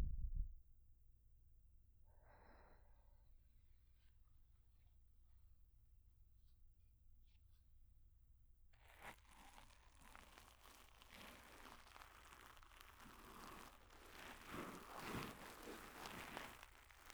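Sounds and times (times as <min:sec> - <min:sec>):
ear cleaning: 0:08.8 - 0:17.1.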